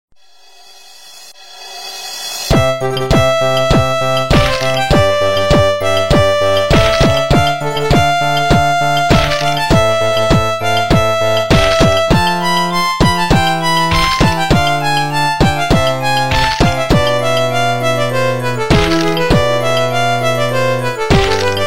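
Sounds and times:
violin phone ringtone: 2.6 - 21.6.

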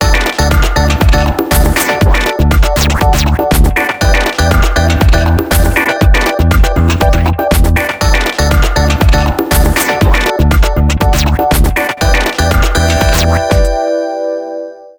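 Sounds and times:
ringtone: 0.0 - 14.9.

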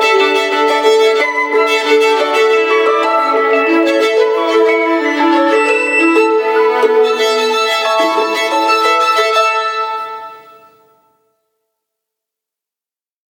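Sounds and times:
Vertu Constellation Quest phone ringtone: 0.0 - 10.6.

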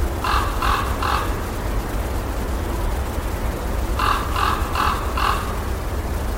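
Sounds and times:
forest creek: 0.2 - 6.2.

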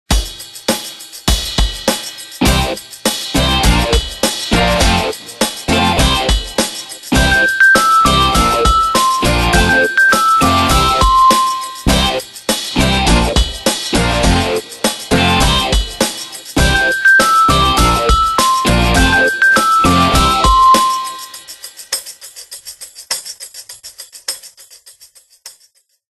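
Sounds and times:
rolling rock ringtone: 2.4 - 21.6.

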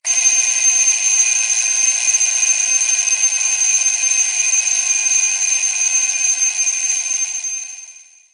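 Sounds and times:
mechanical phone alarm tones: 0.0 - 8.3.

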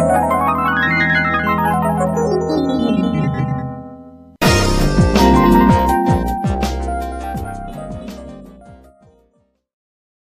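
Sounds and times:
ascending ringtone: 0.0 - 8.0.

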